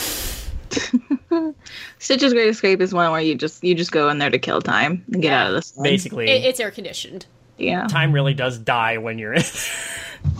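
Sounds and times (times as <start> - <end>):
voice imitating compressed air spray hiss: 0.0 - 0.6
speech: 0.8 - 10.3
laughter: 9.3 - 10.2.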